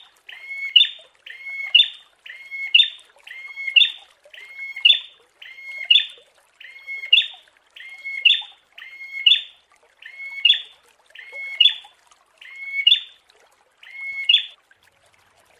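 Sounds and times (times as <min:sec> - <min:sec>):
prinia singing: 0:00.3 - 0:10.6, 0:12.4 - 0:13.1.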